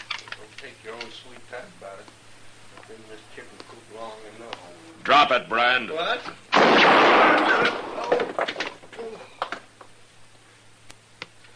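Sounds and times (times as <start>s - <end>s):
low steady hum: 0.0s - 11.5s
speech: 0.6s - 9.4s
gunshot: 6.5s - 8.2s.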